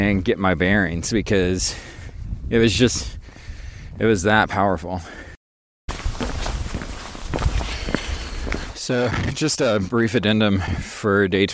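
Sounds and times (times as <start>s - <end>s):
speech: 0.0s - 3.2s, 4.0s - 5.2s, 8.9s - 11.5s
footsteps crunching on the Camino trail toward Portomarín: 5.9s - 9.7s.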